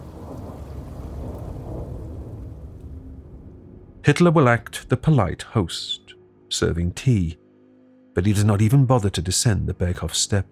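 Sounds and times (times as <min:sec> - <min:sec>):
rain falling: 0:00.0 - 0:05.3
speech: 0:04.0 - 0:07.4, 0:08.2 - 0:10.4.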